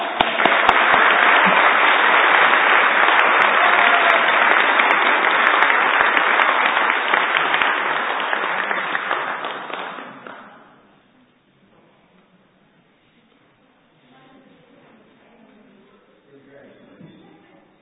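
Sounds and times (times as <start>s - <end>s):
audience applause: 0.0s - 10.6s.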